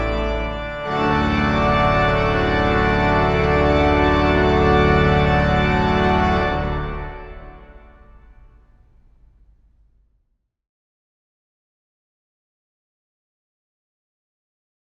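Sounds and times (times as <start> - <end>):
trumpet piece: 0.0 - 8.6.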